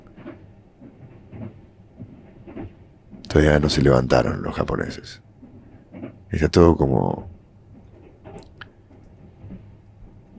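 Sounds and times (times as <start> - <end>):
moving train interior rumble in Japan: 0.0 - 10.3
soft rhythmic knocks of a moving train: 0.0 - 10.3
speech: 3.3 - 5.3, 6.3 - 7.3.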